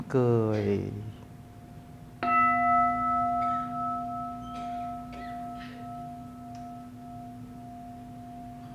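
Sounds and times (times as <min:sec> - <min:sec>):
speech: 0:00.1 - 0:01.1
mindfulness bell ringing: 0:02.3 - 0:08.7.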